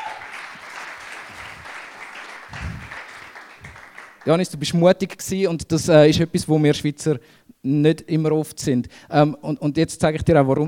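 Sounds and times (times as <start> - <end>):
crowd applauding: 0.0 - 4.3
speech: 4.2 - 10.6.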